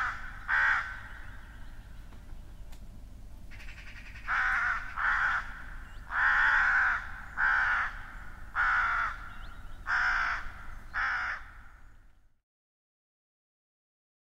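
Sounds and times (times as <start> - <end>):
crow giving drawn-out hoarse rasping caws: 0.0 - 1.8, 3.5 - 12.1.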